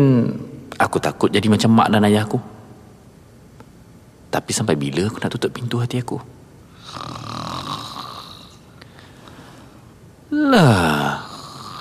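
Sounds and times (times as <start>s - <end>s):
speech: 0.0s - 2.5s, 4.3s - 7.2s, 10.4s - 11.2s
mother snoring while asleep: 6.8s - 8.7s, 10.3s - 11.7s.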